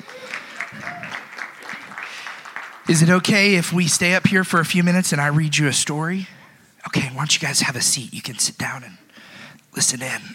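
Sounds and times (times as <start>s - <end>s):
audience applause: 0.0s - 3.7s
speech: 2.9s - 9.1s, 9.8s - 10.3s.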